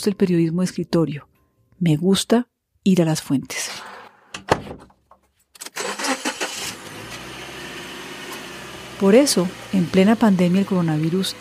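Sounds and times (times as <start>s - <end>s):
speech: 0.0s - 4.0s, 9.0s - 11.4s
car engine cranking and starting into a rumbling idle: 5.6s - 11.4s.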